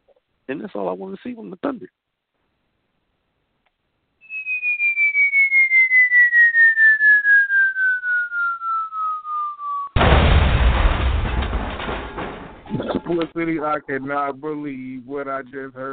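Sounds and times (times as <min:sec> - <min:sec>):
speech: 0:00.5 - 0:02.0, 0:13.1 - 0:15.9
cartoon-style falling bomb whistle: 0:04.2 - 0:10.8
loud rumbling explosion: 0:10.0 - 0:13.1.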